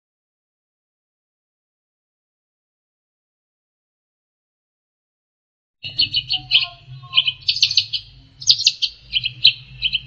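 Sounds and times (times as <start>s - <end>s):
long-tailed shrike chattering: 5.8s - 10.0s
low hum: 5.8s - 10.0s.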